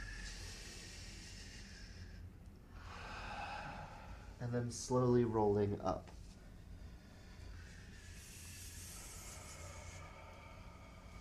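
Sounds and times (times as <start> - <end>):
slow breath during a guided exercise: 0.0 - 4.4, 6.2 - 11.1
speech: 4.4 - 6.2.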